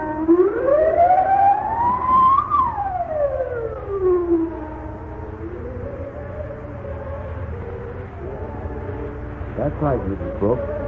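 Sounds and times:
low steady rumble: 0.0 - 10.8
wailing alarm siren: 0.0 - 10.8
speech: 9.8 - 10.8.

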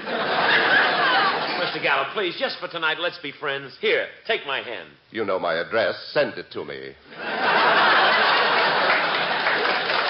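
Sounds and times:
laughter: 0.0 - 2.0, 7.1 - 10.0
speech: 1.8 - 7.5
studio audience applause: 7.6 - 10.0.

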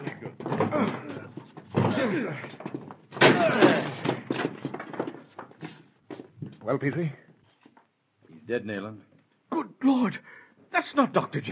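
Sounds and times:
door being broken down: 0.0 - 5.7
speech: 2.1 - 2.7, 6.7 - 7.2, 8.5 - 9.1, 9.8 - 10.3, 10.9 - 11.5.

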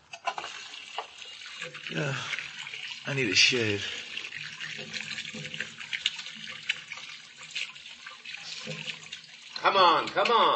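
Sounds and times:
water running from a tap while washing hands: 0.2 - 10.5
speech: 1.6 - 2.4, 3.1 - 4.0, 4.8 - 5.8, 9.6 - 10.5.

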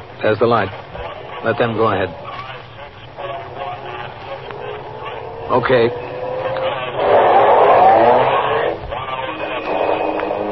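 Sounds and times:
speech: 0.2 - 2.2, 5.5 - 6.0
car engine accelerating away: 2.1 - 10.5.

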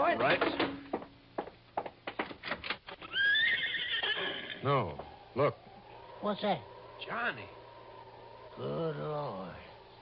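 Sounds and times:
hooves clopping: 0.1 - 8.3
horse whinnying: 3.0 - 5.1
speech: 6.3 - 7.6, 8.6 - 9.7.

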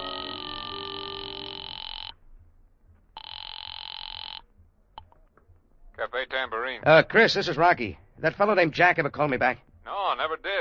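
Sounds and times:
telephone ringing over the line: 0.0 - 2.2, 3.2 - 4.5
speech: 6.0 - 10.5.

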